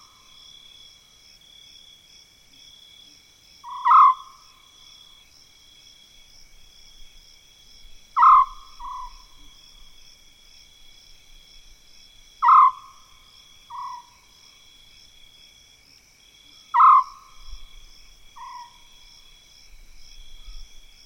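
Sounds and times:
African scops owl purring trill: 0:03.6 - 0:04.4, 0:08.2 - 0:09.4, 0:12.4 - 0:12.9, 0:16.7 - 0:17.4.

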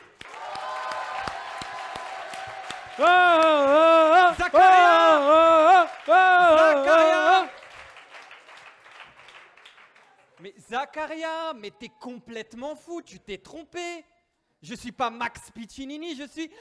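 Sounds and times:
audience applause: 0:00.0 - 0:10.5
loud sustained cheering whoops: 0:00.2 - 0:07.6
speech: 0:03.0 - 0:03.8, 0:10.7 - 0:16.5.

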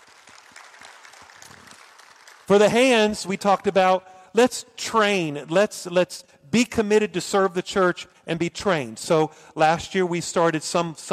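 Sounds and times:
audience hand clapping: 0:00.0 - 0:03.7
speech: 0:02.5 - 0:11.1.

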